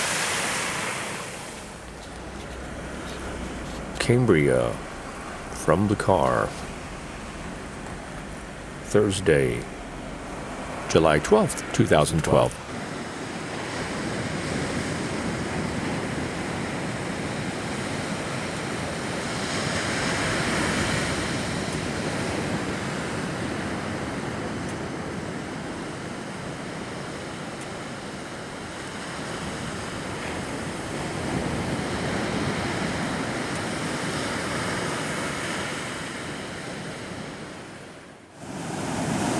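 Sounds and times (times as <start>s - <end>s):
ocean waves on a beach: 0.0s - 39.3s
speech: 4.0s - 4.9s, 5.6s - 6.7s, 8.9s - 9.7s, 10.9s - 12.6s.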